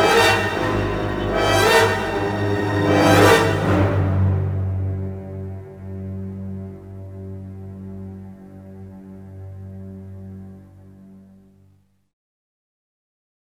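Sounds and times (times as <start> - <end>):
action music: 0.0 - 5.2.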